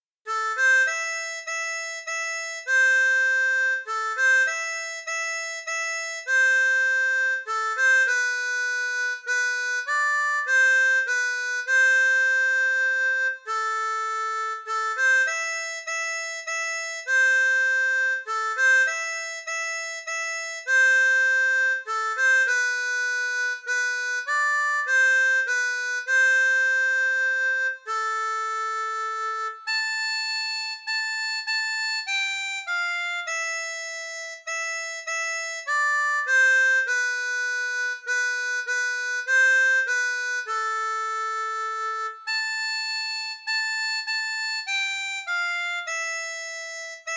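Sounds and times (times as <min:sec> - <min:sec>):
harmonica playing a waltz: 0:00.3 - 0:47.1.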